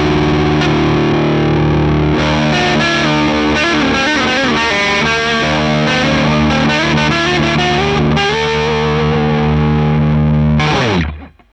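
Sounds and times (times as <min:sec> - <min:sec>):
saturated Les Paul electric guitar: 0:00.0 - 0:11.5.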